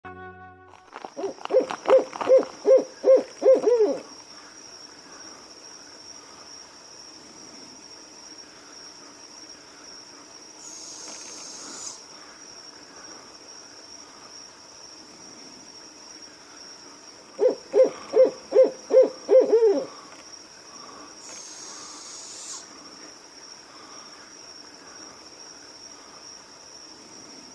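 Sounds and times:
owl hooting: 0:01.2 - 0:04.1, 0:10.6 - 0:12.0, 0:17.4 - 0:20.0, 0:21.2 - 0:22.7.

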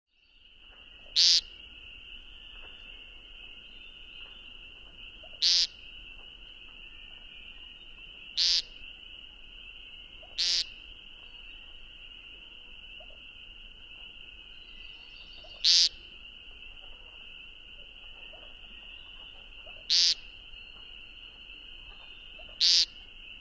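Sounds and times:
Woodcock buzzy peent calls: 0:01.0 - 0:01.6, 0:05.1 - 0:06.2, 0:08.3 - 0:08.9, 0:10.2 - 0:11.8, 0:15.3 - 0:20.9, 0:21.7 - 0:23.3.

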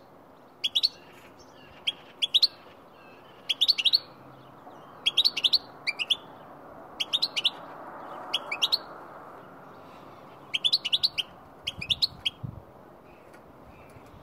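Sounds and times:
goldfinch calling: 0:00.6 - 0:04.1, 0:04.7 - 0:06.3, 0:07.0 - 0:07.6, 0:08.3 - 0:08.9, 0:10.5 - 0:12.4.

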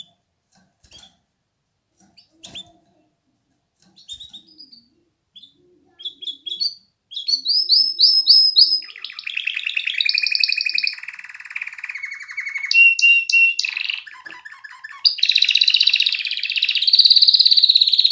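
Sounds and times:
canary singing trills and rolling tours: 0:03.8 - 0:18.0.

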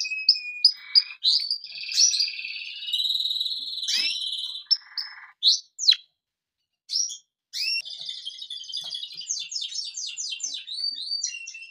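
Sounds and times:
Canary song fragments: 0:00.0 - 0:11.6.

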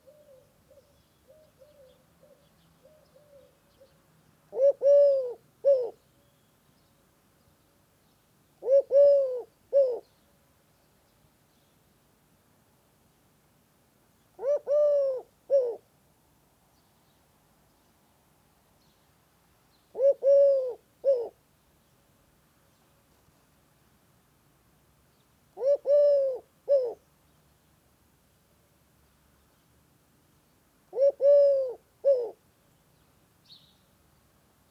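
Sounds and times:
Eurasian collared dove calling: 0:04.5 - 0:06.0, 0:08.6 - 0:10.1, 0:14.4 - 0:15.8, 0:19.9 - 0:21.4, 0:25.6 - 0:27.0, 0:30.9 - 0:32.4.

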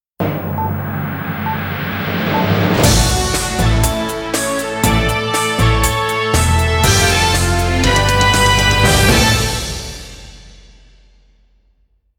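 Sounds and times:
news intro music: 0:00.2 - 0:10.1.

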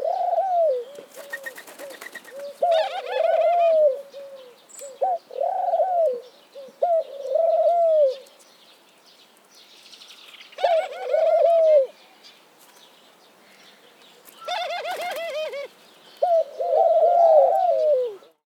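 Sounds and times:
Eurasian collared dove cooing: 0:00.0 - 0:08.3, 0:10.6 - 0:12.0, 0:14.3 - 0:18.4.

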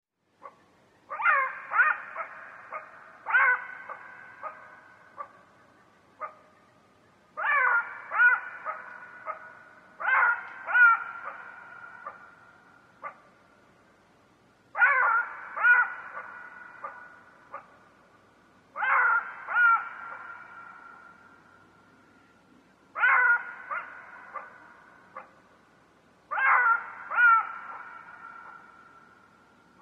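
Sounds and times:
jackal yipping and wailing: 0:01.1 - 0:05.3, 0:07.4 - 0:12.3, 0:14.8 - 0:17.7, 0:23.0 - 0:24.6, 0:26.3 - 0:28.7.

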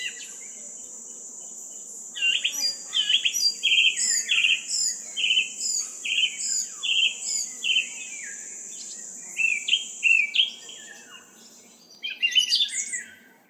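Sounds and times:
calm garden sounds: 0:00.0 - 0:13.4.

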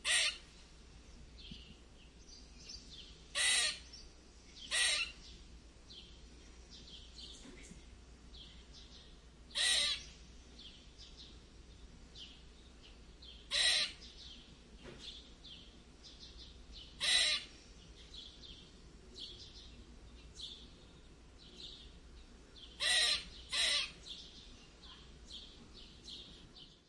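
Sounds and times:
squirrel squeaking: 0:00.0 - 0:00.4, 0:03.4 - 0:03.9, 0:04.7 - 0:05.2, 0:09.5 - 0:10.1, 0:13.5 - 0:14.1, 0:17.0 - 0:17.5, 0:22.8 - 0:24.0.

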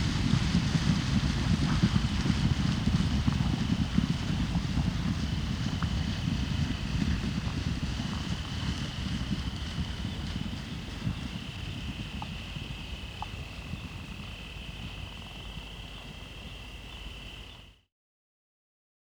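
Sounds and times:
zebra herd running hoofbeats: 0:00.0 - 0:17.8
faint clicks: 0:12.2 - 0:12.4, 0:13.1 - 0:13.4.

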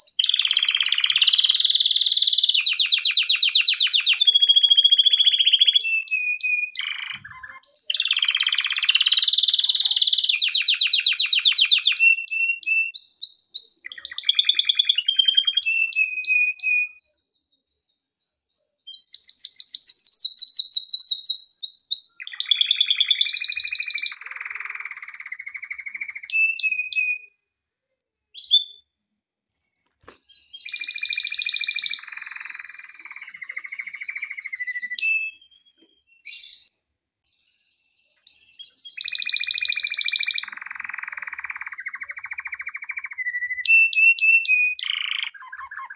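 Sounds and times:
Canary song: 0:00.0 - 0:45.9.

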